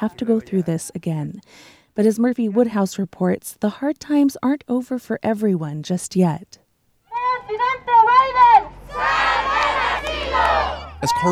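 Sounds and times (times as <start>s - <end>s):
speech: 0.0s - 6.6s, 10.3s - 11.3s
crowd shouting and babble: 7.1s - 11.3s
protesters chanting at border crossing: 7.1s - 11.3s.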